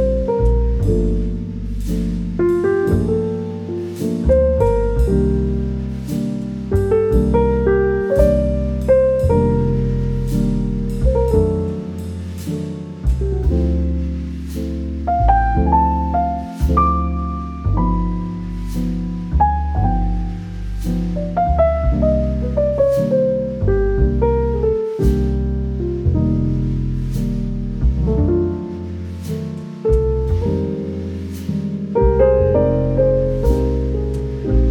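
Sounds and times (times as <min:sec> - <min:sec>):
soothing serene smooth jazz with romantic cafe vibes: 0:00.0 - 0:34.6.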